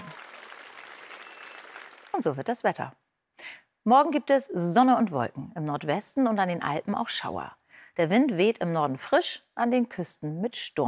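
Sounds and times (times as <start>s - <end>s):
large enthusiastic concert audience applauding: 0.0s - 2.2s
speech: 2.2s - 3.0s, 3.8s - 10.8s.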